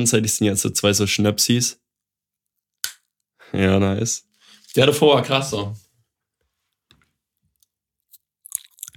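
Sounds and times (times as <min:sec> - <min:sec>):
speech: 0:00.0 - 0:01.8, 0:03.5 - 0:05.8
chewing and biting into crunchy snack: 0:08.1 - 0:08.9.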